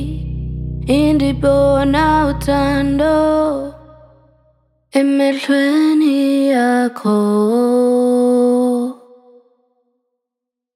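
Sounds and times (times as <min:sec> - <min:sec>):
vocals mix: 0:00.0 - 0:09.7.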